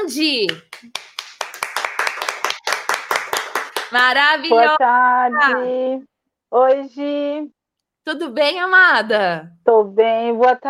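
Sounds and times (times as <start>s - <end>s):
speech: 0.1s - 1.0s, 3.9s - 10.6s
round of applause: 0.4s - 4.2s.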